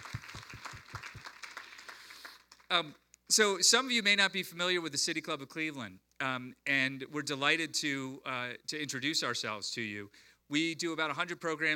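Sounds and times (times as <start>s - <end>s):
audience applause: 0.0s - 2.7s
speech: 2.7s - 11.7s.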